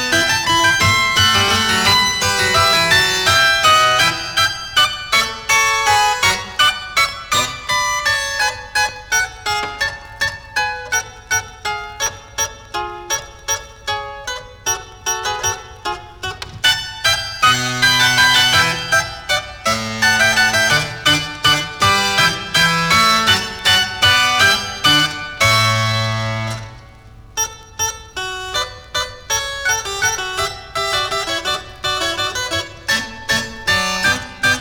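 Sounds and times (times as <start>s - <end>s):
harpsichord fugue in D major: 0.0s - 34.5s.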